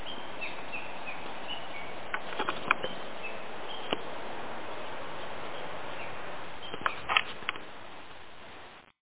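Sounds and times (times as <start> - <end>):
Japanese bush warbler singing: 0.0 - 8.0.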